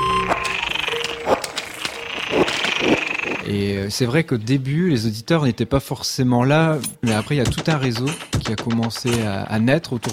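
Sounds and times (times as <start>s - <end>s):
frogs in distress croaking and squealing in a pond: 0.5s - 3.5s
chirping insects: 0.6s - 3.4s
speech: 3.5s - 10.1s.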